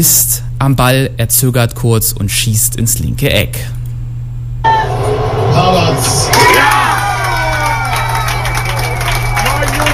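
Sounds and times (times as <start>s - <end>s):
speech: 0.0s - 3.8s, 5.6s - 6.8s
crowd cheering in the Strandarena: 4.6s - 9.9s
crowd clapping in the Strandarena: 6.2s - 9.9s.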